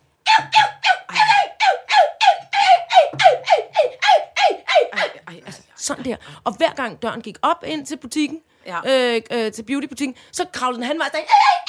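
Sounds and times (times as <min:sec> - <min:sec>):
voice imitating a small dog whining: 0:00.3 - 0:05.2, 0:11.2 - 0:11.6
speech: 0:05.9 - 0:11.6.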